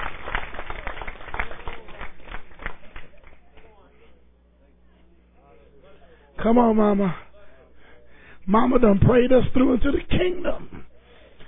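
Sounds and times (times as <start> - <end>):
crowd clapping in praise: 0.0 - 3.9
speech: 6.4 - 7.2, 8.5 - 10.8.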